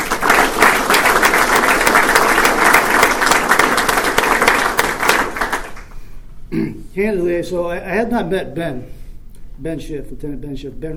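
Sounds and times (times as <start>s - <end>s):
audience applause: 0.0s - 6.0s
speech: 6.6s - 9.0s, 9.6s - 10.9s.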